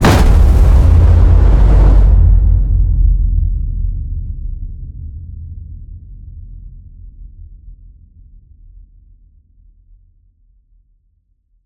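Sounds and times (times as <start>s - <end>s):
designed cinematic fire hit: 0.0s - 4.8s.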